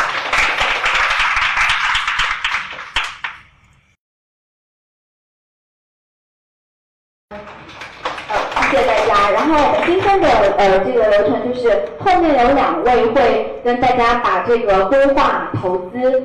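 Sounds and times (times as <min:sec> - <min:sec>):
audience applause: 0:00.0 - 0:03.6, 0:07.3 - 0:10.6
speech: 0:09.5 - 0:16.2.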